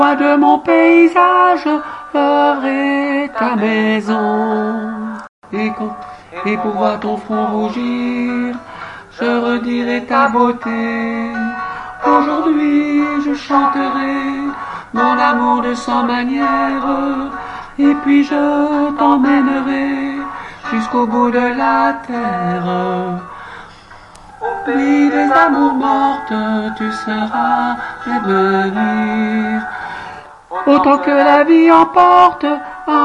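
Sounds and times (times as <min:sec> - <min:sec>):
tenor singing chorale: 0:00.0 - 0:23.4, 0:24.4 - 0:29.8, 0:30.5 - 0:33.0.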